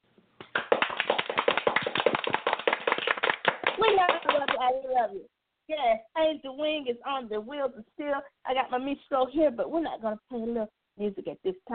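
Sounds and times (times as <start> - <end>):
hand clapping: 0.4 - 4.8
speech: 3.8 - 11.7.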